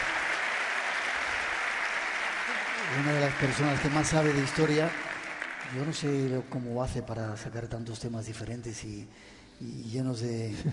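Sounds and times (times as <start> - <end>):
audience applause for a guest: 0.0 - 6.8
speech: 2.9 - 5.1, 5.7 - 10.7.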